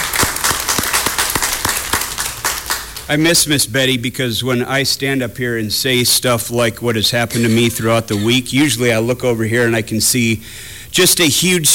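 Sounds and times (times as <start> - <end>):
congregation clapping in a Baptist church during corporate worship: 0.0 - 3.3
speech: 3.1 - 11.7.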